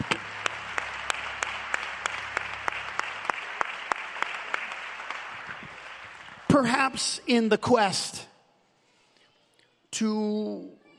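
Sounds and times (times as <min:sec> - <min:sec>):
audience clapping hands: 0:00.0 - 0:07.1
speech: 0:06.6 - 0:08.3, 0:10.0 - 0:10.8.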